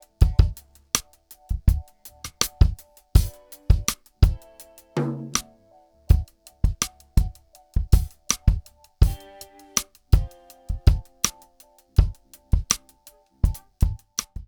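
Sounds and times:
drums through Chandler Zener Limiter TG12413: 0:00.0 - 0:14.4.

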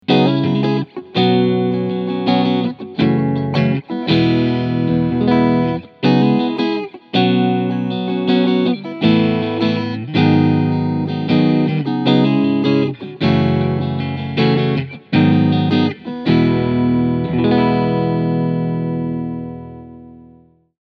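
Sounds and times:
clean electric guitar on front and middle pickups: 0:00.0 - 0:20.7.

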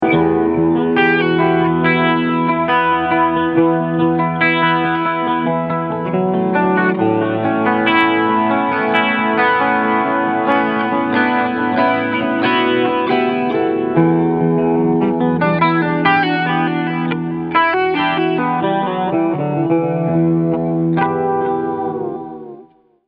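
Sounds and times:
Morley AFX-1 echo chorus effect: 0:00.0 - 0:23.0.

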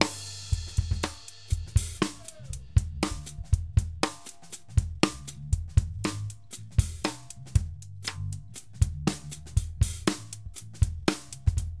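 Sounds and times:
clear bass drum: 0:00.0 - 0:11.7
popping snare drum: 0:01.0 - 0:02.5.

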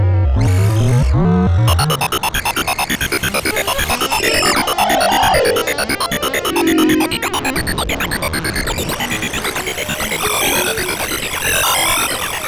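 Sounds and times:
ARP 2600M synthesizer sound effects: 0:00.2 - 0:12.4.

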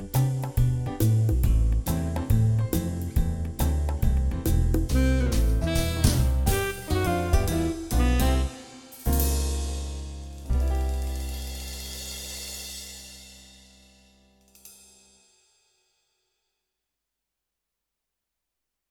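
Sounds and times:
Roland BK3 keyboard accompaniment styles: 0:00.0 - 0:11.3.

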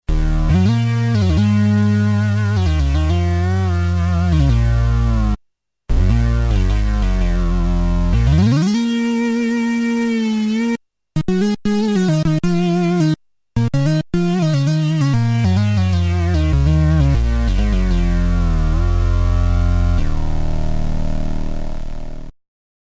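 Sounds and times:
mono bass: 0:00.1 - 0:22.3.

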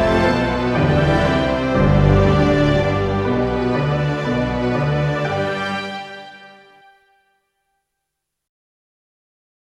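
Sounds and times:
Juno-DS88 synthesizer orchestra section: 0:00.0 - 0:07.3.

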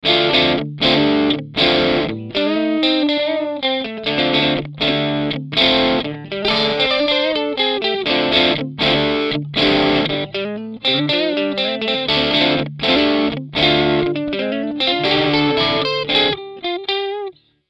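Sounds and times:
overdriven guitar through Mooer GE 300 UK30 OD: 0:00.0 - 0:17.5.

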